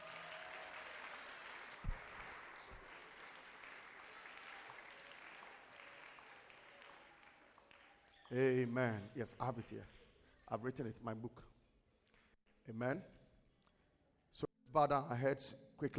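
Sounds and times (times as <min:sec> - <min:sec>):
audience clapping: 0:00.0 - 0:10.0
speech: 0:08.3 - 0:11.5, 0:12.7 - 0:13.2, 0:14.3 - 0:15.9.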